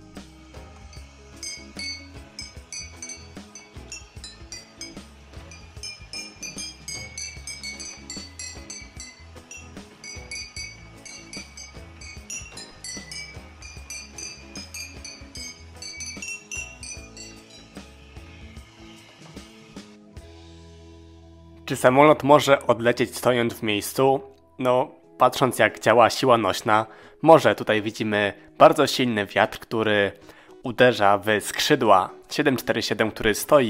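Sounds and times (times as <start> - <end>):
music played by striking large glass bottles: 0.0 - 20.4, 31.4 - 32.7
speech: 21.7 - 33.6.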